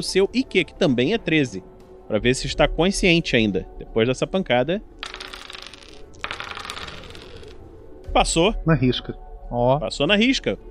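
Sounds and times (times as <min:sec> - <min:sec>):
speech: 0:00.0 - 0:04.9, 0:08.1 - 0:10.7
dice rattling and clattering across a hard surface: 0:05.0 - 0:07.6.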